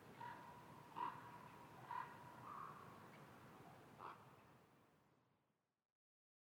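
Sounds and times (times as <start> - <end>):
common raven calling in Schorfheide: 0.2 - 2.9, 4.0 - 4.3.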